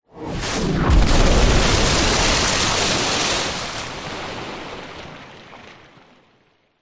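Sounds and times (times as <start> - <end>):
large water bomb splash: 0.3 - 5.3
warfare missile hitting water: 0.6 - 5.9.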